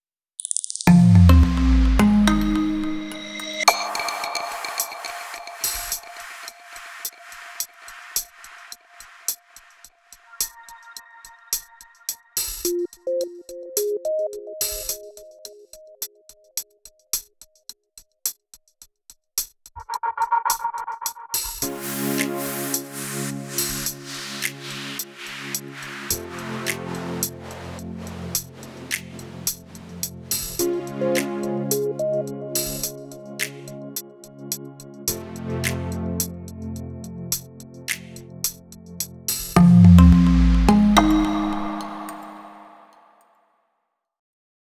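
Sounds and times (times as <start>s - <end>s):
calm logo music bed at slower tempo: 0.9s - 7.2s, 10.3s - 16.5s, 21.6s - 39.0s, 39.6s - 42.9s.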